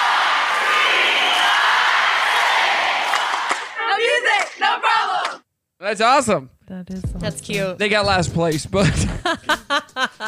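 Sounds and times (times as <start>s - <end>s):
crowd counting aloud during cheer routine: 0.0s - 5.5s
speech: 5.8s - 10.2s
laughter: 8.8s - 10.2s.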